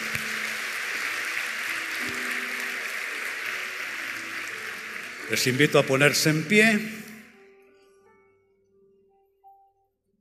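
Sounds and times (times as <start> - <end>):
applause: 0.0 - 7.3
speech: 5.3 - 7.0.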